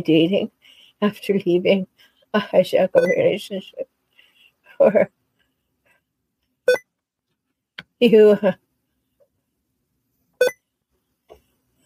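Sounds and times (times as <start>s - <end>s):
speech: 0.0s - 3.9s, 4.8s - 5.2s, 8.0s - 8.6s
computer beeping: 3.0s - 3.3s, 10.4s - 10.6s.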